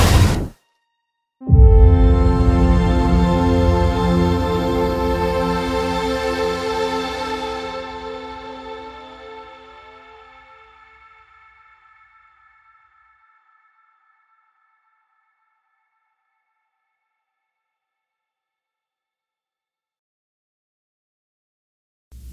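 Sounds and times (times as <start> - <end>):
cosmic music: 1.4 - 12.5.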